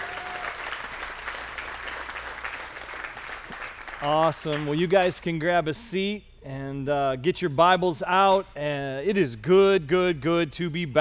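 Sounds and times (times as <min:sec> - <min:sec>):
audience applause: 0:00.0 - 0:04.7
speech: 0:04.0 - 0:10.9.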